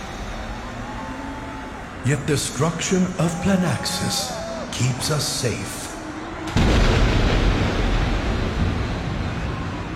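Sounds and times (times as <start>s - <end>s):
speech: 2.1s - 5.8s
storm thunder: 6.5s - 9.9s.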